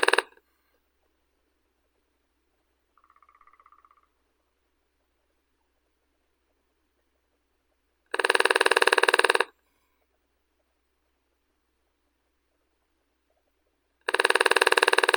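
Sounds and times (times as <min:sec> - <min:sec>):
lesser spotted woodpecker Dendrocopos minor: 0:00.0 - 0:00.4, 0:03.0 - 0:04.4, 0:08.1 - 0:09.5, 0:14.0 - 0:15.1.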